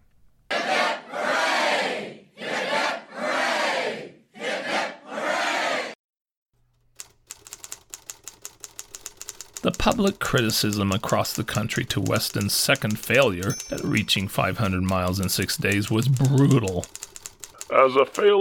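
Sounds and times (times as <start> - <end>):
crowd giving three cheers: 0.5 - 6.0
typewriter clacking: 6.9 - 18.3
speech: 9.7 - 17.0, 17.7 - 18.4.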